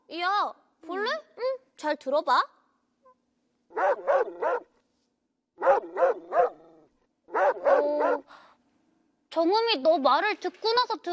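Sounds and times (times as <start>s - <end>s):
speech: 0.1s - 2.6s, 3.8s - 4.6s, 9.4s - 11.1s
puppy barking: 3.7s - 4.8s, 5.6s - 8.3s.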